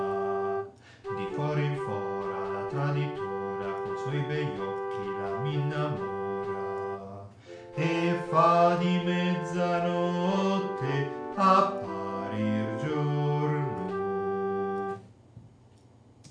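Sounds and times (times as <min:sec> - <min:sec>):
alto pastoral piece: 0:00.0 - 0:15.0.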